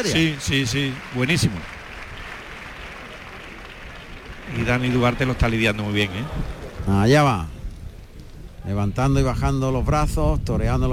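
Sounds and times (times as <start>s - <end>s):
speech: 0.0s - 1.8s, 4.5s - 7.6s, 8.6s - 10.9s
bullring crowd applauding: 0.0s - 8.7s.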